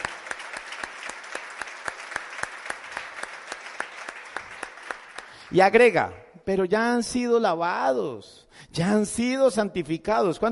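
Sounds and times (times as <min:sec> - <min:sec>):
audience applause: 0:00.0 - 0:05.5
speech: 0:05.5 - 0:10.4.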